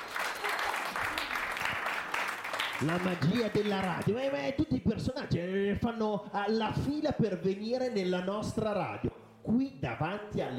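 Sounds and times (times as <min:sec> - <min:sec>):
applause on a children's school radio show: 0:00.0 - 0:04.5
speech: 0:02.8 - 0:10.5.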